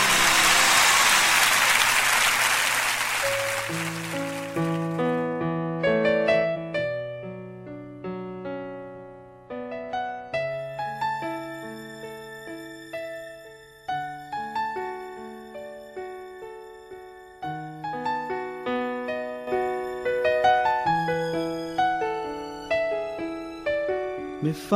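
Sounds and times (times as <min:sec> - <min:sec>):
crowd applauding: 0:00.0 - 0:05.2
instrumental music: 0:00.0 - 0:24.7.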